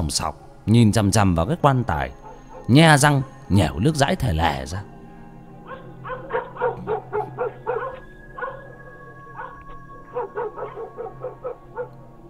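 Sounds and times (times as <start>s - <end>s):
speech: 0.0s - 4.9s
dogs barking frantically: 2.2s - 2.8s, 5.6s - 12.0s.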